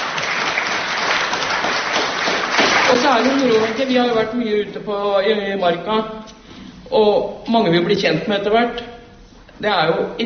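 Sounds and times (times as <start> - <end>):
audience applause and clapping: 0.0 - 4.0
speech: 3.1 - 6.3, 6.9 - 8.9, 9.6 - 10.2.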